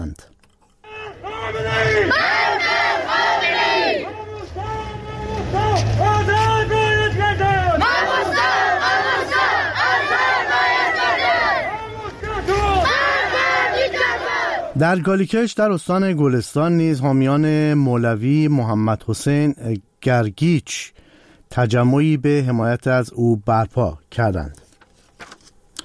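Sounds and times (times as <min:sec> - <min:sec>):
large protest crowd chanting loudly in unison: 0:00.8 - 0:14.8
speech: 0:14.8 - 0:24.6.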